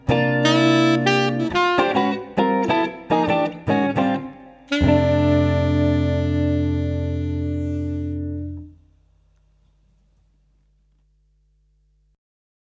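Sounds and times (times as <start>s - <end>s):
swing duo playing: 0.0s - 8.7s.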